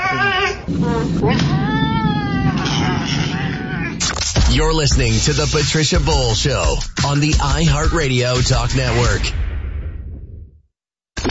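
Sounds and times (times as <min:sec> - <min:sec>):
cat meowing: 0:00.0 - 0:04.0
speech: 0:00.8 - 0:01.7, 0:04.5 - 0:09.4.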